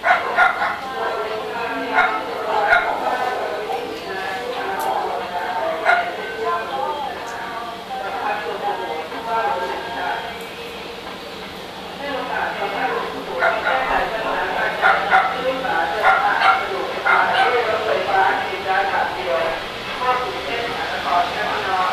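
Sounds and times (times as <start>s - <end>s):
dogs in the street in Bangkok: 0.0s - 7.3s, 12.9s - 17.8s
propaganda in a street in Bangkok: 0.0s - 21.9s.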